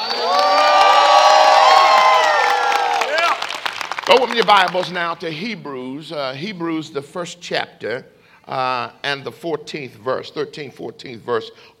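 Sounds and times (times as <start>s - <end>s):
audience at a religious seminar cheering and whooping: 0.0s - 3.8s
speech: 4.1s - 11.7s.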